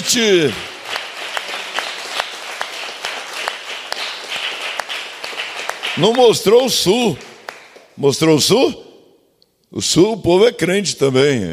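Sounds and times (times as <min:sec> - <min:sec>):
speech: 0:00.0 - 0:00.7, 0:06.0 - 0:07.3, 0:08.0 - 0:08.8, 0:09.7 - 0:11.5
audience applauding: 0:00.0 - 0:08.0.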